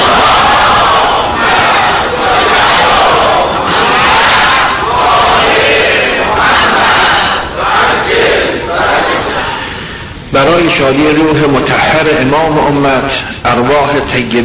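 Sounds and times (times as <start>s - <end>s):
large crowd chanting salawat blessings in unison: 0.0s - 9.9s
speech: 10.7s - 14.4s.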